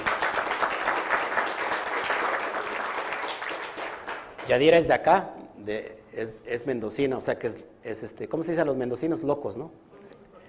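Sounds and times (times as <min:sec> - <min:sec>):
audience applause: 0:00.0 - 0:04.5
speech: 0:04.5 - 0:09.9.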